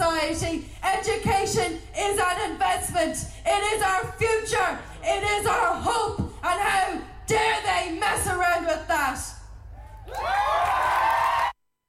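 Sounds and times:
speech: 0.3s - 9.3s
crowd cheering and whooping after a speech: 9.8s - 11.6s.

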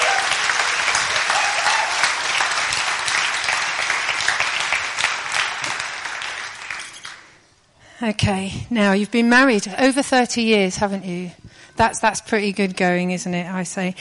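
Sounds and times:
audience applause: 0.0s - 7.3s
speech: 8.0s - 13.9s.

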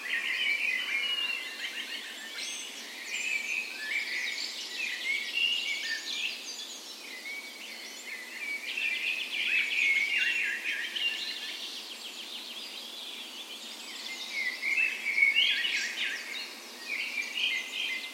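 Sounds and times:
dawn chorus birds singing: 0.0s - 18.1s.

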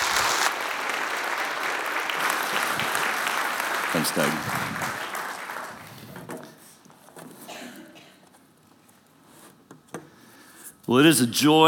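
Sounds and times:
audience applause welcoming a speaker: 0.0s - 6.2s
speech: 3.9s - 5.0s, 10.9s - 11.6s.

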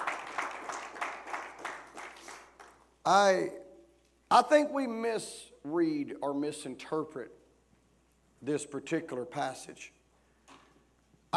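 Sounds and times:
audience clapping hands: 0.0s - 3.0s
speech: 3.1s - 3.6s, 4.3s - 7.4s, 8.4s - 10.0s.

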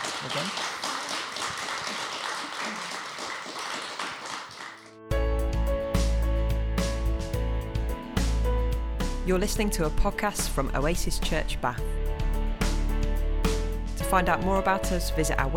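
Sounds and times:
audience applause: 0.0s - 5.0s
speech: 0.2s - 0.8s, 9.3s - 12.0s, 14.1s - 15.5s
loud music with deep bass line and sustained tones: 5.1s - 15.5s.

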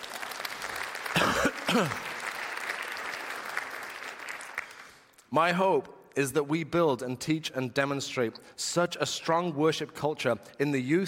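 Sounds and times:
crowd applauding: 0.0s - 5.1s
speech: 1.7s - 2.1s, 5.3s - 11.0s.

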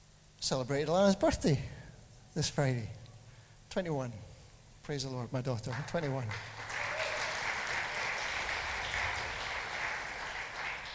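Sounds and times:
speech: 0.4s - 1.8s, 2.4s - 3.0s, 3.7s - 6.6s
audience applause: 5.7s - 10.9s.

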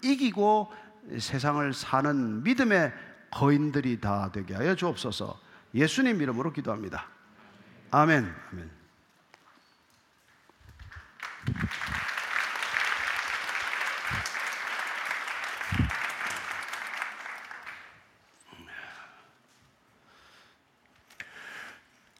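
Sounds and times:
speech: 0.0s - 7.2s, 7.9s - 8.8s, 11.4s - 12.0s
audience applause: 10.9s - 18.1s.

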